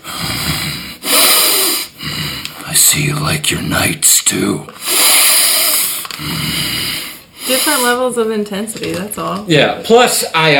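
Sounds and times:
person imitating heavy breathing down someone's neck during chess: 0.0 - 2.7, 4.8 - 7.9
speech: 2.9 - 4.9, 6.2 - 6.7, 7.6 - 10.5.

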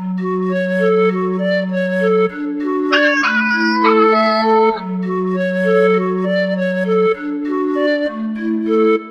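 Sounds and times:
panpipe tune: 0.0 - 9.0
cat vocal ad lib: 3.0 - 4.9.

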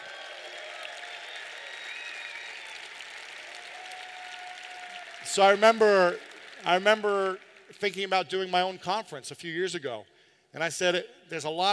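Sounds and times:
audience applause: 0.0 - 8.0
speech: 5.3 - 11.7.

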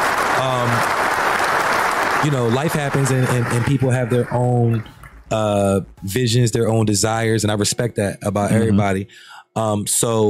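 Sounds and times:
audience applause: 0.0 - 5.2
speech: 2.2 - 10.2.

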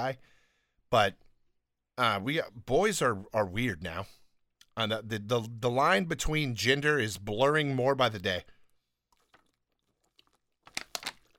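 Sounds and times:
speech: 0.0 - 1.2, 2.0 - 4.2, 4.8 - 8.6
swigging water from a bottle: 9.0 - 11.3.

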